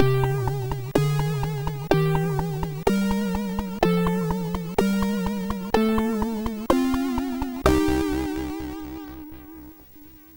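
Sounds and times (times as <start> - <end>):
MOS 6581R2 SID chip music: 0.0 - 10.3.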